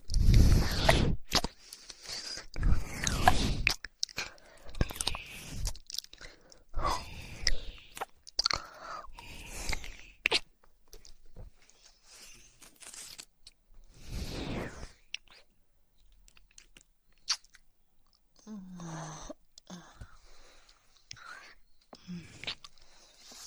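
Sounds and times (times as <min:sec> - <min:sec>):
woman licking ears with lots of saliva: 0:00.0 - 0:10.4.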